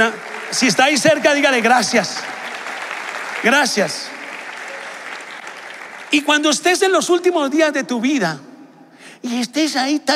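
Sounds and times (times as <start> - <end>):
speech: 0.0 - 2.4, 3.4 - 4.1, 6.1 - 8.5, 9.2 - 10.1
audience applause: 0.0 - 6.9.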